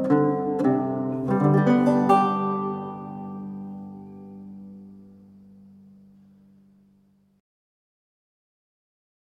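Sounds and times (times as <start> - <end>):
lute music: 0.0 - 7.2.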